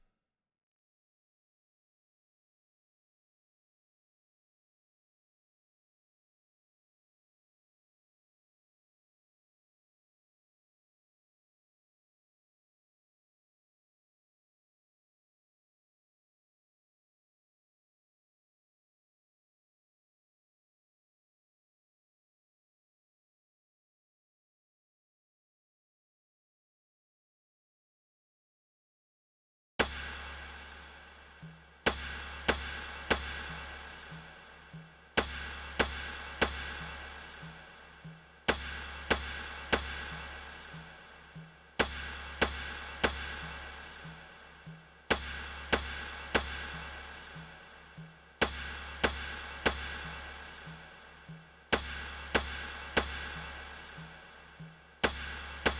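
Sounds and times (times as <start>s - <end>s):
percussion: 29.8s - 55.7s.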